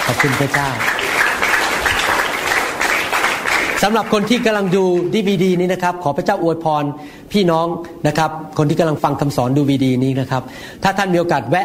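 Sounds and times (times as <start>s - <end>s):
audience clapping: 0.0s - 5.7s
speech: 0.1s - 1.1s, 3.8s - 11.6s.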